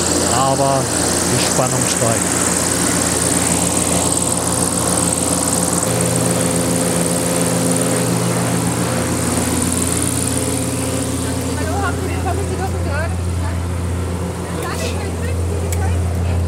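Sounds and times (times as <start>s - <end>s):
zeppelin airship engines starting up: 0.0s - 16.4s
speech: 0.4s - 2.5s.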